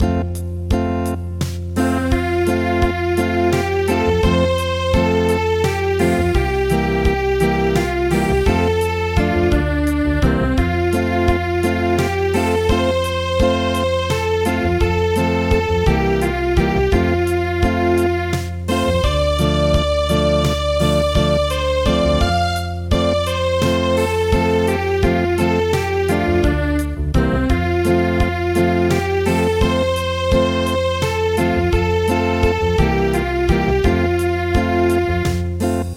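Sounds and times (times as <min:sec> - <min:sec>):
traditional acoustic music: 0:00.0 - 0:35.9.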